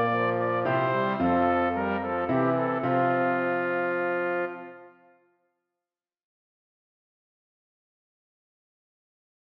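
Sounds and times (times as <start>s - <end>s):
piano playing a minuet: 0.0s - 5.1s
baritone horn playing a minuet: 0.0s - 5.3s
trumpet playing a minuet: 0.0s - 5.4s.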